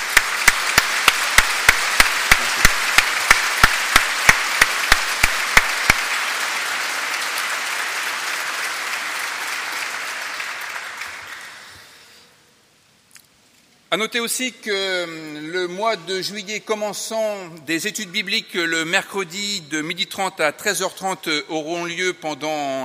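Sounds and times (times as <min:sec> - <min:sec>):
sharp, evenly spaced claps in a regular beat: 0:00.0 - 0:11.7
audience applause: 0:00.0 - 0:12.0
speech: 0:14.0 - 0:22.8.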